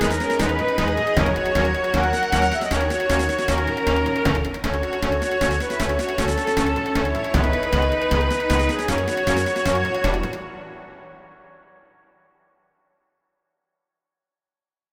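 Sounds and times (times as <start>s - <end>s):
cargo ship battle music: 0.0s - 11.4s.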